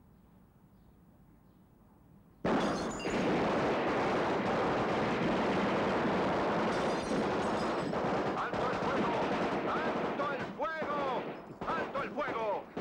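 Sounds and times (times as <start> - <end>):
sustained dense rapid gunfire: 2.5 - 12.8.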